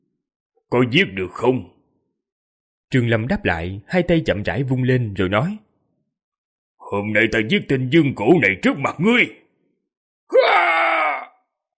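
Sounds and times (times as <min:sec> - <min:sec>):
speech: 0:00.7 - 0:01.7, 0:02.9 - 0:05.6, 0:06.9 - 0:09.4
wounded man screaming loudly: 0:10.3 - 0:11.4.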